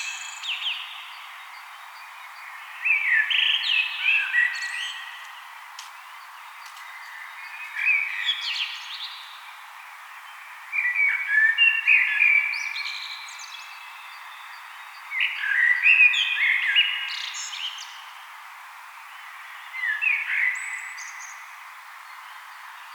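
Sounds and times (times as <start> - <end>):
common blackbird song: 0.0 - 22.9.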